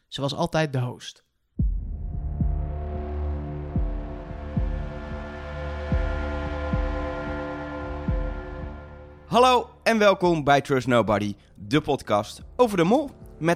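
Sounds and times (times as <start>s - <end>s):
speech: 0.1s - 1.2s, 9.3s - 13.5s
opening theme music: 1.6s - 10.4s.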